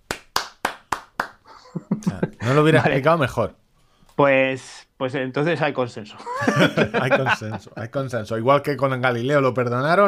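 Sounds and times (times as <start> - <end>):
hand claps: 0.0 - 1.5
laughter: 1.5 - 3.2, 6.2 - 8.1
speech: 1.7 - 3.6, 4.2 - 10.0.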